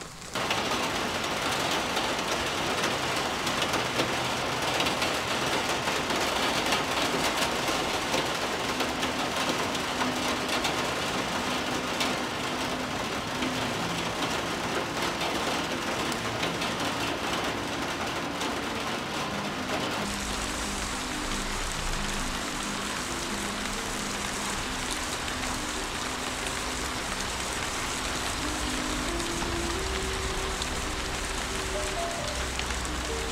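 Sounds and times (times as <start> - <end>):
rain on roof: 0.0 - 33.3.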